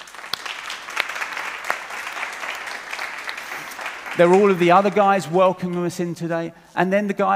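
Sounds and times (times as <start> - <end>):
crowd applauding: 0.0 - 5.9
speech: 4.2 - 7.3.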